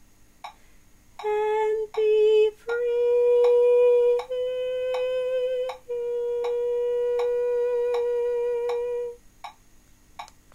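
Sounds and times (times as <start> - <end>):
soprano singing: 1.2 - 9.2.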